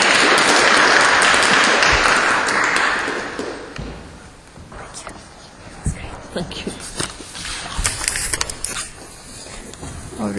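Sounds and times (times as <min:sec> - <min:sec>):
audience applause: 0:00.0 - 0:03.8.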